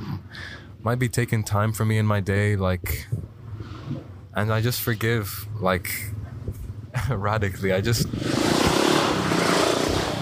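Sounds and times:
speech: 0.8s - 3.2s, 3.9s - 6.2s, 7.1s - 8.5s
faulty motorbike roaring past: 8.1s - 10.2s.

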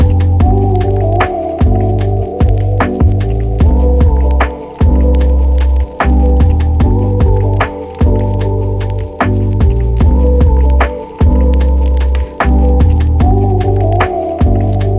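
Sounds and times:
fireplace crackling: 0.0s - 14.9s
mellow lo-fi loop of bass chords: 0.0s - 14.9s.

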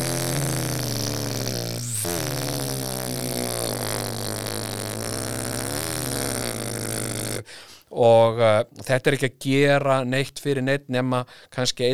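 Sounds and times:
voice imitating small propeller airplane drone: 0.0s - 7.5s
speech: 8.0s - 11.9s.

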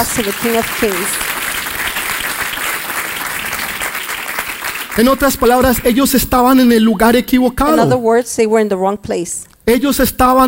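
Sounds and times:
speech: 0.0s - 1.4s, 5.0s - 10.4s
audience applause: 0.0s - 5.8s.

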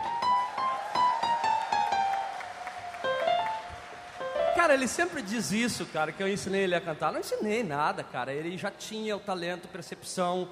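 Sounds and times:
audience clapping: 0.0s - 6.7s
speech: 4.6s - 10.4s.

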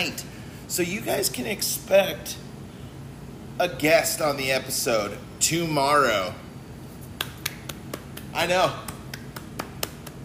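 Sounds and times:
speech: 0.0s - 2.5s, 3.6s - 6.4s, 8.4s - 8.9s
one person clapping hands: 7.2s - 10.2s.

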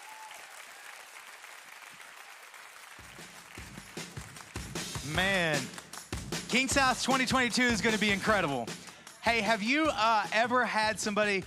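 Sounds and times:
audience applause: 0.0s - 6.1s
speech: 5.1s - 5.8s, 6.5s - 11.4s.

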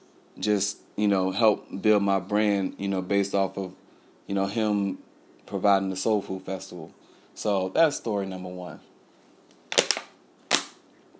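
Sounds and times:
speech: 0.4s - 8.9s
water bottle crackling while drinking: 9.7s - 10.8s.

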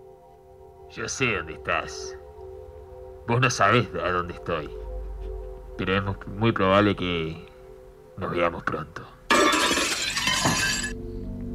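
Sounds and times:
speech: 0.9s - 2.2s, 3.3s - 4.8s, 5.8s - 7.5s, 8.2s - 9.1s, 10.4s - 10.7s
dishes falling and shattering on the floor: 9.3s - 10.9s.

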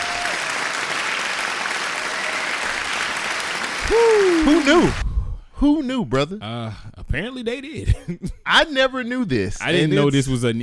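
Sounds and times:
hand claps: 0.0s - 5.0s
speech: 3.9s - 5.0s, 5.6s - 10.6s.

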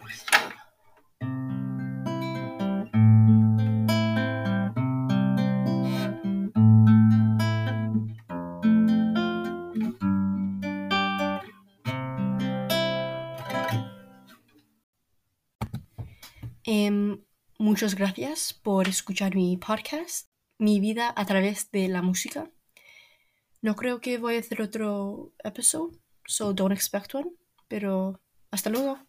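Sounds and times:
song played on guitar: 1.2s - 14.4s
speech: 16.7s - 22.6s, 23.6s - 29.0s.

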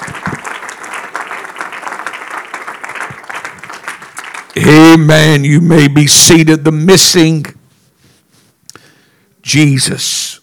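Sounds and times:
audience clapping hands in praise: 0.0s - 5.1s
speech: 4.5s - 7.6s, 9.5s - 10.4s.

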